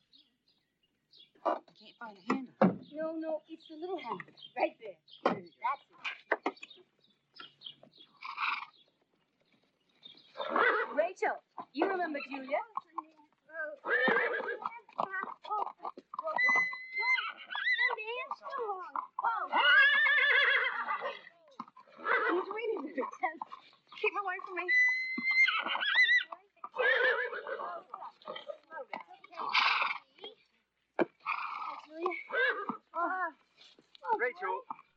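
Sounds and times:
speech: 0:01.4 - 0:06.7, 0:10.4 - 0:12.8, 0:24.0 - 0:24.9
horse named Sundance neighing by a barn: 0:08.2 - 0:08.8, 0:10.4 - 0:13.0, 0:13.7 - 0:23.6, 0:24.4 - 0:28.6, 0:29.4 - 0:30.0, 0:31.2 - 0:33.0.

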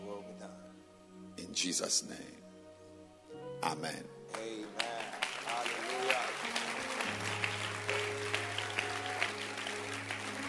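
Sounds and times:
speech: 0:01.5 - 0:02.5, 0:03.6 - 0:05.0
audience clapping hands: 0:04.3 - 0:10.4.

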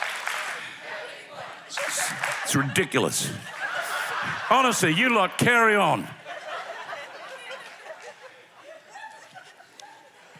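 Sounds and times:
audience clapping: 0:00.0 - 0:01.1, 0:01.7 - 0:05.9
speech: 0:01.7 - 0:03.6, 0:04.2 - 0:06.2
laughter: 0:01.7 - 0:10.3.

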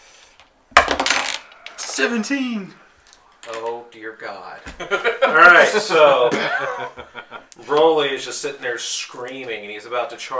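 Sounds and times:
plastic d20 die rolling on a tabletop: 0:00.8 - 0:01.9
speech: 0:02.0 - 0:02.8, 0:03.5 - 0:10.3
laughter: 0:04.8 - 0:07.5.

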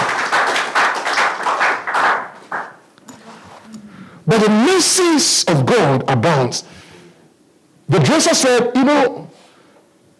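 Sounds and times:
audience clapping: 0:00.0 - 0:02.8
speech: 0:04.4 - 0:06.7, 0:07.9 - 0:09.4.

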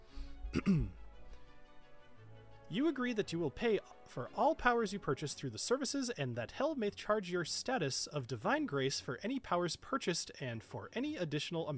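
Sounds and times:
narrator acting out a character clearing his throat: 0:00.5 - 0:01.0
speech: 0:00.6 - 0:01.0, 0:02.7 - 0:11.7.

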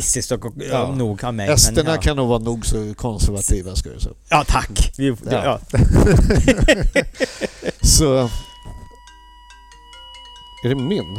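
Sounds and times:
speech: 0:00.0 - 0:08.5, 0:10.6 - 0:11.1
laughter: 0:05.7 - 0:07.8
alarm going off: 0:07.8 - 0:11.1.

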